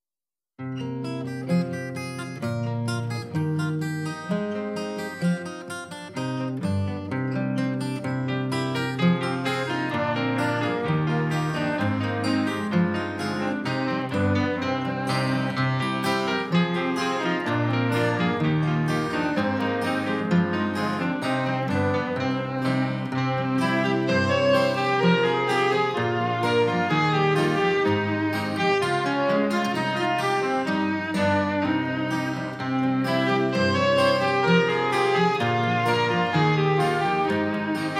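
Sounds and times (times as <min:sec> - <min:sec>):
instrumental music: 0:00.6 - 0:37.9.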